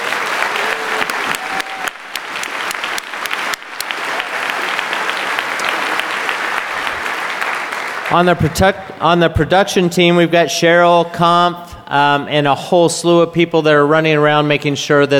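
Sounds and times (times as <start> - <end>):
crowd clapping: 0.0 - 9.0
speech: 8.1 - 15.1.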